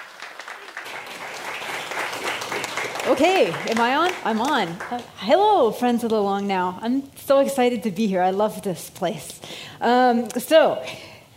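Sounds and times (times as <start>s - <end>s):
audience applause: 0.0s - 5.2s
speech: 3.1s - 11.1s.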